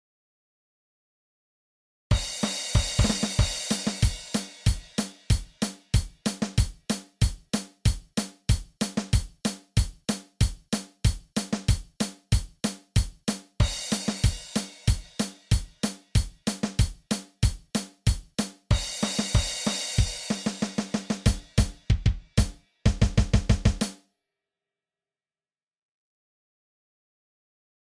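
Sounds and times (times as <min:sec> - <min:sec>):
drum kit: 0:02.1 - 0:24.0.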